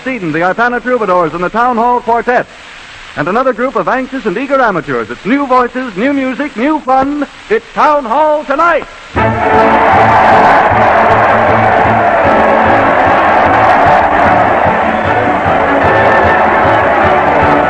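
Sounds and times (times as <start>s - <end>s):
speech: 0.0s - 11.1s
crowd cheering: 9.2s - 17.6s.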